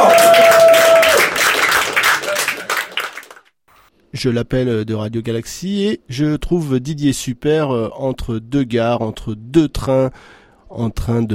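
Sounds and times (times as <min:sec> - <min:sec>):
audience applause: 0:00.0 - 0:03.5
speech: 0:04.2 - 0:11.3.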